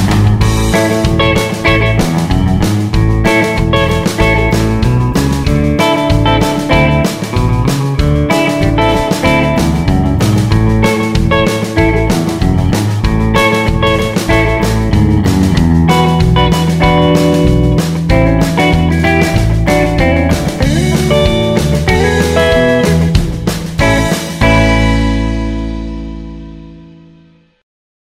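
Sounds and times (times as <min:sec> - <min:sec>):
guitar rhythm: 0:00.0 - 0:27.6.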